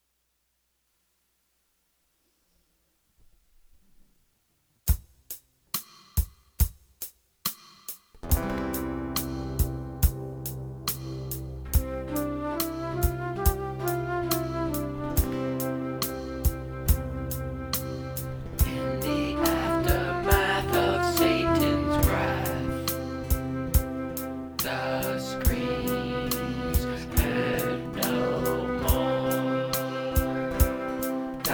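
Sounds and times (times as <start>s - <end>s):
instrumental music: 8.1s - 31.5s.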